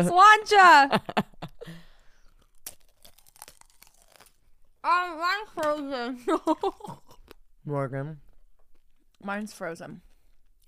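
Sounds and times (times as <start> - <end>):
speech: 0.0 - 1.2, 4.8 - 7.0, 7.7 - 8.2, 9.2 - 10.1
crunching bite into a large pickle: 2.3 - 4.4.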